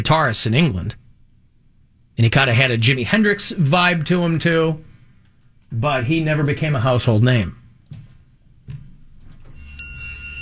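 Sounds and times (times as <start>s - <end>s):
speech: 0.0s - 1.0s, 2.2s - 4.9s, 5.7s - 7.6s
wind chimes: 9.5s - 10.3s.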